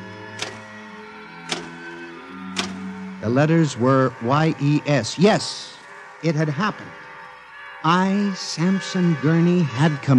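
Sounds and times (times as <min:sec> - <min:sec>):
electric typewriter typing: 0:00.4 - 0:00.6, 0:01.5 - 0:01.7, 0:02.6 - 0:02.8
speech: 0:03.2 - 0:07.0, 0:07.8 - 0:10.1.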